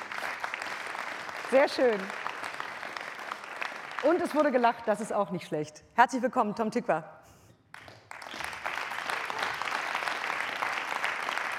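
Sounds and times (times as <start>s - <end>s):
audience clapping: 0.0s - 5.1s, 7.7s - 11.5s
speech: 1.5s - 2.3s, 4.0s - 7.2s.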